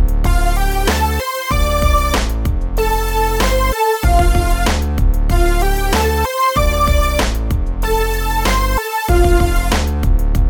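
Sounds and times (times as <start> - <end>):
eighth-note rhythm: 0.2 - 10.4.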